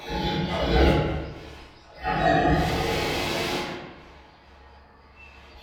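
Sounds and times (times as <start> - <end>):
pig grunting and grumbling: 0.0 - 4.0.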